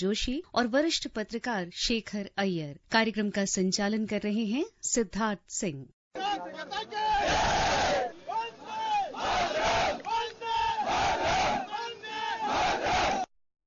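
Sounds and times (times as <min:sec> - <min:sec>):
speech: 0:00.0 - 0:08.1
large crowd chanting a song in unison: 0:06.2 - 0:13.3.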